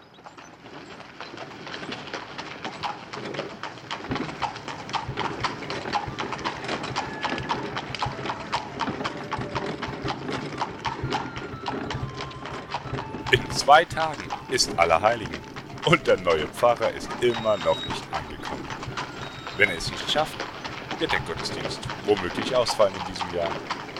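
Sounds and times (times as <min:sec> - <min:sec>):
birds chirping: 0:00.0 - 0:01.4, 0:11.5 - 0:23.9
horse hooves clip-clopping: 0:00.0 - 0:23.9
horse-drawn cart wheels rumbling: 0:00.0 - 0:23.9
speech: 0:13.7 - 0:17.9, 0:19.6 - 0:23.8.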